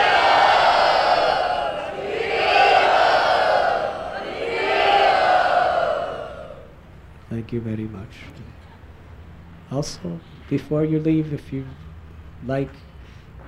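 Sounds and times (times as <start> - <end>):
crowd loudly chanting in Bombay: 0.0 - 6.7
speech: 7.5 - 8.6, 9.7 - 12.8.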